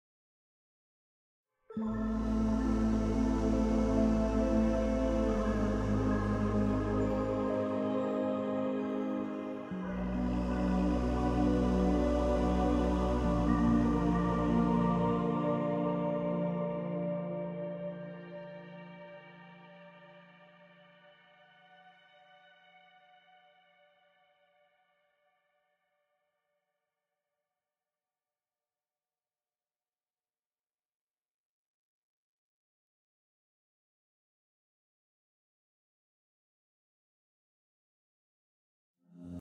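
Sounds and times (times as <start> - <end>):
cave music ending: 1.7 - 26.2, 39.1 - 39.3.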